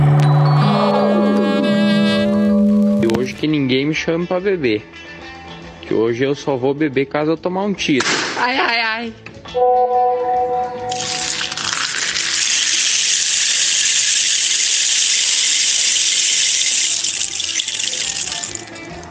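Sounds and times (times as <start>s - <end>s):
squeaky tone: 0.0s - 3.4s
speech: 3.4s - 5.1s, 5.9s - 9.8s
indigenous rain stick being tilted: 10.9s - 19.0s.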